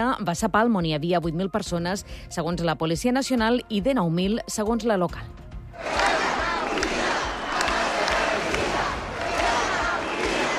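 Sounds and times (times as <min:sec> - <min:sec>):
speech: 0:00.0 - 0:06.0
crowd shouting in favour of Spain: 0:05.8 - 0:10.5.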